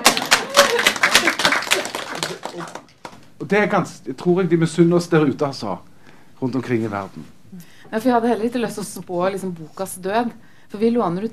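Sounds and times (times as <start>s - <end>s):
audience clapping: 0.0s - 3.3s
speech: 3.5s - 11.3s.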